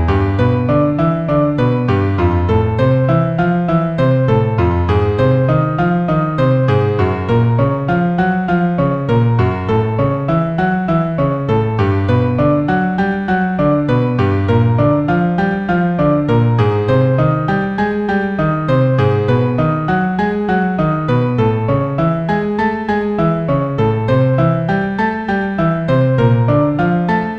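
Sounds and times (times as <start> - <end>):
Arp Ex 2 100 synthesizer keyboard: 0.0 - 27.3.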